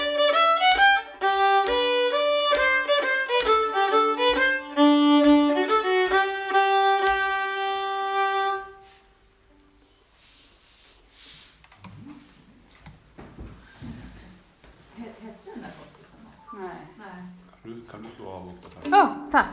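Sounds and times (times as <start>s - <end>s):
schottische dance music: 0.0s - 8.8s.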